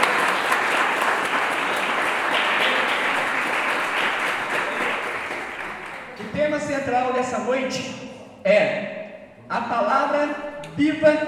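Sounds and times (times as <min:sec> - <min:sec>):
audience applauding: 0:00.0 - 0:06.6
speech: 0:06.9 - 0:08.9, 0:09.5 - 0:11.2.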